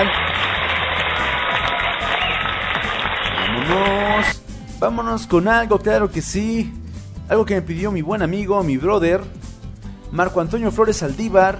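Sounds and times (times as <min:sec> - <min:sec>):
crowd applause ovation: 0:00.0 - 0:04.3
speech: 0:04.8 - 0:09.4, 0:10.1 - 0:11.5.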